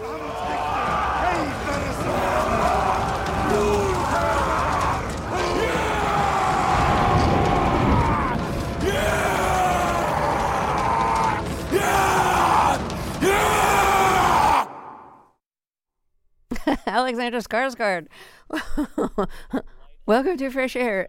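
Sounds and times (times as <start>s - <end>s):
group of men chanting: 0.0s - 14.7s
drawn-out howl: 0.0s - 15.0s
guttural roars and shouts: 0.0s - 15.2s
speech: 16.9s - 21.0s.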